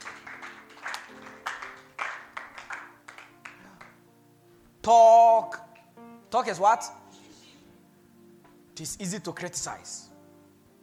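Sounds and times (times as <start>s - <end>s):
audience clapping: 0.0s - 4.0s
speech: 4.8s - 5.6s, 6.3s - 7.0s, 8.8s - 10.1s.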